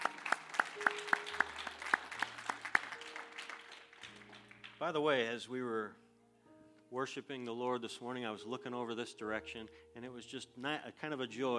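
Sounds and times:
crowd clapping: 0.0 - 4.9
speech: 4.8 - 6.0, 6.9 - 11.5.

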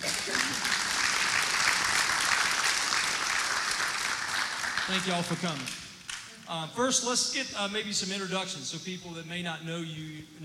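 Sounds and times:
audience applause with many hands clapping: 0.0 - 5.8
speech: 4.9 - 5.8, 6.5 - 10.4.

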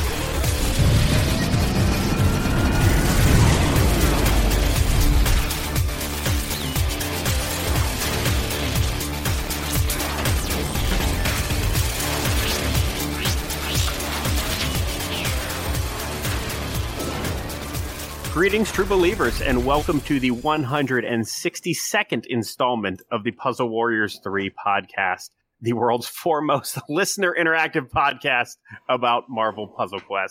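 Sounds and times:
truck engine idling outside window: 0.2 - 20.2
speech: 18.4 - 30.2.

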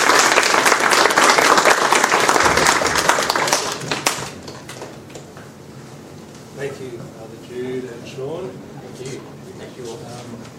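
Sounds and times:
audience applause: 0.0 - 5.2.

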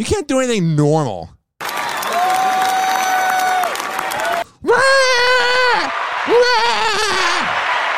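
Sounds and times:
speech: 0.0 - 1.4
church crowd clapping: 1.6 - 4.5, 5.8 - 7.9
voices whooping and crying out: 1.8 - 7.9.

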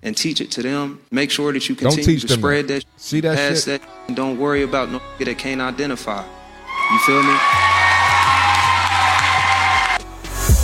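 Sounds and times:
speech: 0.0 - 7.7
audience cheering and applause: 6.7 - 10.1.

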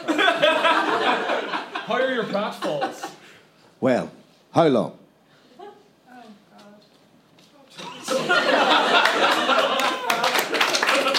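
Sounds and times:
laughter: 0.0 - 3.4, 7.8 - 11.1
speech: 1.9 - 3.1, 3.8 - 5.0
audience at a stage performance clapping: 8.2 - 11.1.

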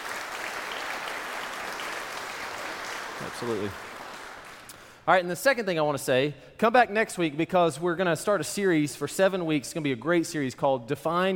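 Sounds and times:
audience applause: 0.0 - 4.7
speech: 3.2 - 3.9, 5.1 - 11.3.

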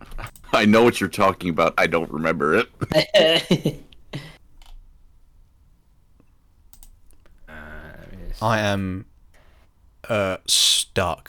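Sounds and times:
speech: 0.6 - 3.9, 8.4 - 9.1, 10.1 - 11.2
typing on computer keyboard with one hand: 6.7 - 7.0.

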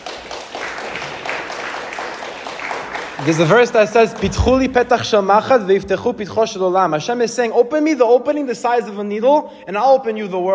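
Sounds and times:
round of applause from students at a Torah class: 0.0 - 4.7
speech: 3.2 - 10.5.

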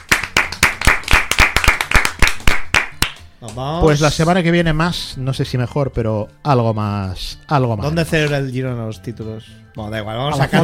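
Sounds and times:
applause: 0.0 - 3.3
speech: 3.4 - 10.6.

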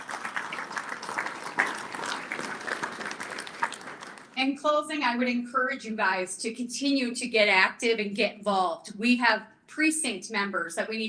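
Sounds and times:
audience applause: 0.0 - 4.4
speech: 4.4 - 11.0.

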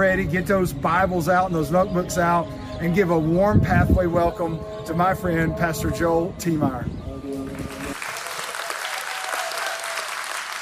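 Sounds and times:
speech: 0.0 - 7.0
crowd applause: 7.8 - 10.5.

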